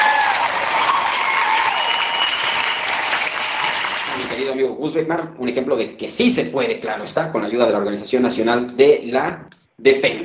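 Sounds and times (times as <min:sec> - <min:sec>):
audience applause: 0:00.0 - 0:04.5
speech: 0:04.8 - 0:10.2.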